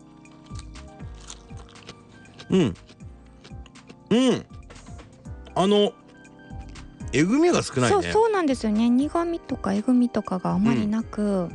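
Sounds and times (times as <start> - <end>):
person biting into a fresh green vegetable: 0.0 - 4.1
soft chewing: 0.0 - 6.9
speech: 2.5 - 2.8, 4.1 - 4.5, 5.6 - 6.0, 7.1 - 11.5.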